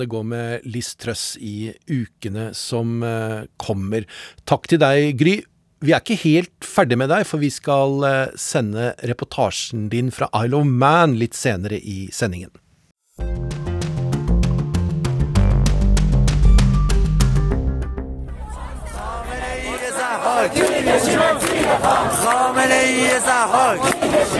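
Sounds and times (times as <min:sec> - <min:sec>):
speech: 0:00.0 - 0:12.6, 0:20.4 - 0:24.3
music with steady tones and sharp beats: 0:13.2 - 0:17.8
crowd of students chanting slogans: 0:18.3 - 0:24.3.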